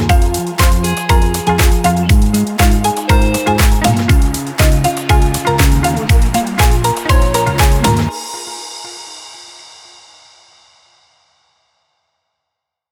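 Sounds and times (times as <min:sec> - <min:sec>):
pop music advertising: 0:00.0 - 0:08.5.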